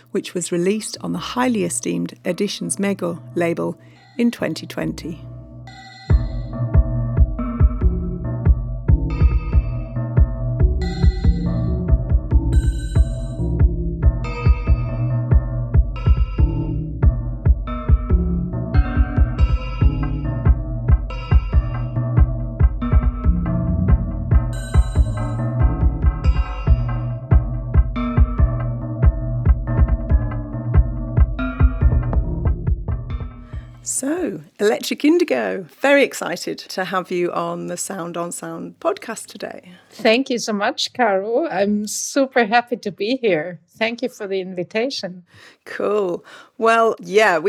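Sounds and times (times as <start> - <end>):
speech: 0.1 - 5.3, 34.9 - 47.4
experimental electronic music track: 6.1 - 33.7.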